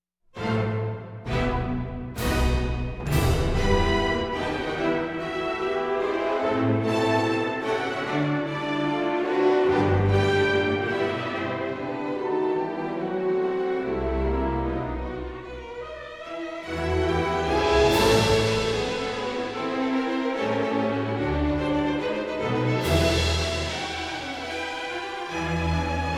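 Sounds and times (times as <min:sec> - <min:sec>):
orchestra: 0:00.4 - 0:26.1.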